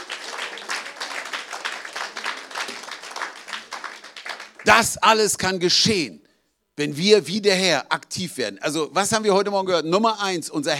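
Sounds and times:
crowd applauding: 0.0 - 4.9
speech: 4.6 - 6.2, 6.8 - 10.7.

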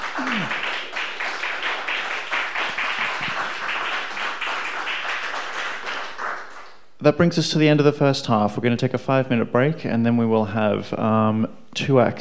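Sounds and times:
audience round of applause: 0.0 - 6.8
speech: 7.0 - 12.2.

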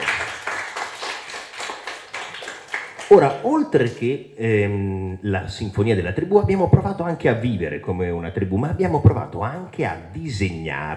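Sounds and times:
crowd applause: 0.0 - 3.3
speech: 3.1 - 10.9.

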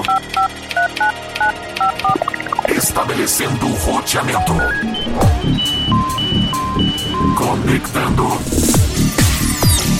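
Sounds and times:
touch-tone keypad beeps: 0.0 - 2.7, 4.6 - 7.4
rising electronic chirps: 1.8 - 2.7, 4.4 - 7.5
speech: 2.8 - 6.4, 7.4 - 8.9.

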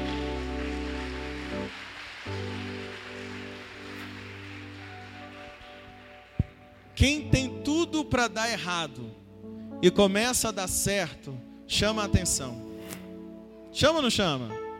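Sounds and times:
audience applauding loudly: 0.0 - 7.0
sustained keyboard chords: 0.0 - 14.7
speech: 7.0 - 9.2, 9.8 - 12.7, 13.7 - 14.6.

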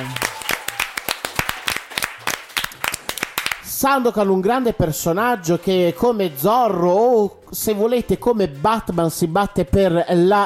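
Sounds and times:
applause: 0.0 - 3.7
speech: 3.8 - 10.4.

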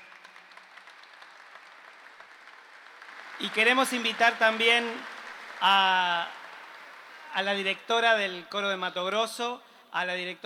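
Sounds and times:
crowd applause: 0.0 - 7.7
speech: 3.4 - 6.4, 7.3 - 10.4.

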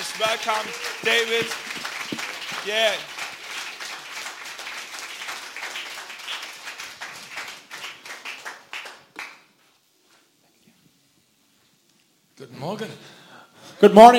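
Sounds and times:
audience applause welcoming a guest speaker: 0.0 - 9.6
speech: 0.2 - 1.8, 2.6 - 3.1, 12.4 - 13.2, 13.8 - 14.1.

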